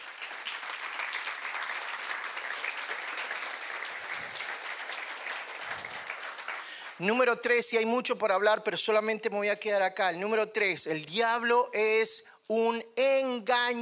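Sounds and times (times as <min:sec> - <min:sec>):
audience applause: 0:00.0 - 0:07.0
speech: 0:07.0 - 0:13.7.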